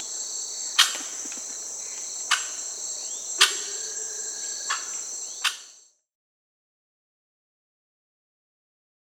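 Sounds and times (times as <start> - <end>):
Crested Oropendola Psarocolius decumanus calling in Peru: 0.0 - 5.8.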